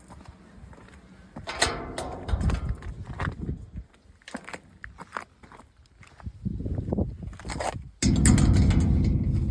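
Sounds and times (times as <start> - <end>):
exit gate: 1.5 - 3.2, 8.0 - 9.4.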